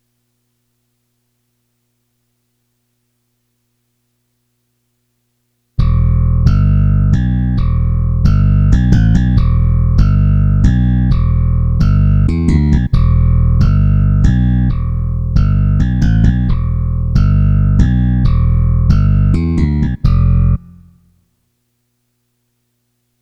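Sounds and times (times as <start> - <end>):
bass: 5.8 - 21.2.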